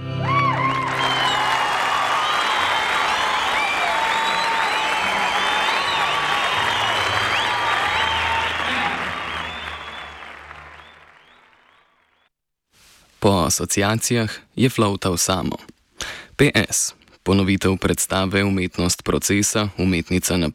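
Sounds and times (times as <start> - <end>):
whoops and cheers: 0.0 - 11.6
audience clapping: 0.3 - 12.3
speech: 13.2 - 20.5.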